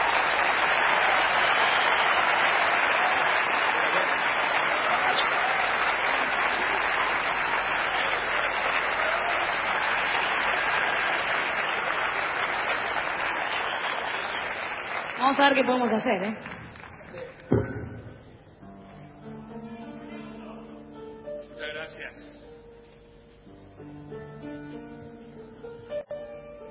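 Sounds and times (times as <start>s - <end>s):
audience applause: 0.0s - 17.5s
speech: 15.4s - 16.5s.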